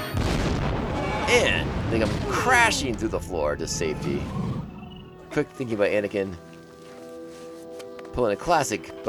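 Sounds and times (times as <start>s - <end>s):
bomb explosion: 0.1s - 4.5s
speech: 1.3s - 4.7s, 5.3s - 6.5s, 8.1s - 9.0s.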